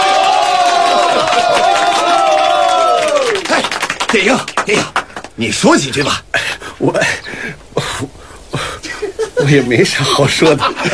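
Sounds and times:
crowd clapping and cheering: 0:00.0 - 0:05.4
laughter: 0:00.7 - 0:02.3, 0:07.8 - 0:10.9
speech: 0:04.1 - 0:08.1, 0:09.4 - 0:10.9.

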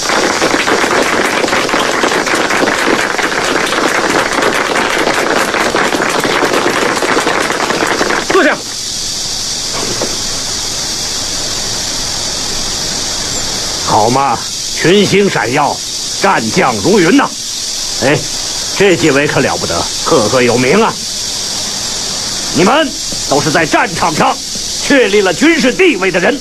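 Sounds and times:
audience applause: 0:00.0 - 0:08.8
speech: 0:14.1 - 0:17.4, 0:18.0 - 0:21.0, 0:22.6 - 0:26.3.

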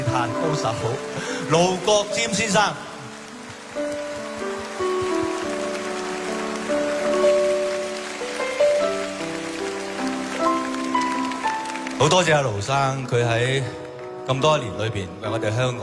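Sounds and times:
crowd clapping: 0:00.0 - 0:14.7
speech: 0:00.2 - 0:02.9, 0:12.0 - 0:15.8.

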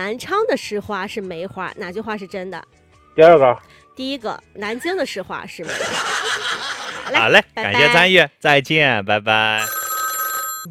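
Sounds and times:
speech: 0:00.0 - 0:09.8
laughter: 0:05.6 - 0:07.4
telephone ringing: 0:09.6 - 0:10.6.

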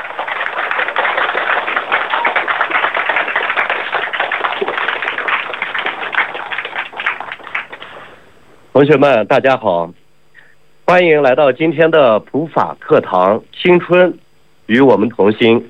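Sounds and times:
audience applause: 0:00.0 - 0:08.2
speech: 0:08.8 - 0:10.0, 0:10.9 - 0:15.6.

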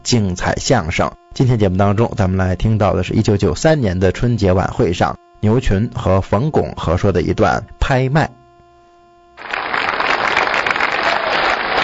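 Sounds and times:
speech: 0:00.1 - 0:08.4
crowd applause: 0:09.4 - 0:11.8.

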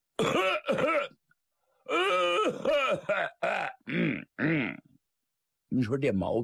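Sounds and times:
voice imitating loud booming throat-clearing coughs: 0:00.2 - 0:01.2, 0:01.9 - 0:04.9.

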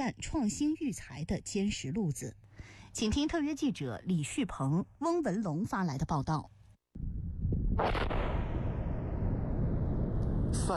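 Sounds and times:
speech: 0:00.0 - 0:07.1, 0:07.8 - 0:08.2
missile hitting target and exploding: 0:07.7 - 0:10.7.

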